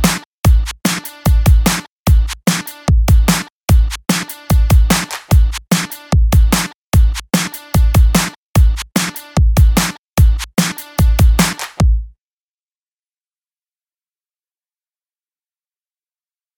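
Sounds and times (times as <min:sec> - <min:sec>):
148 bpm musical beat: 0:00.0 - 0:12.1.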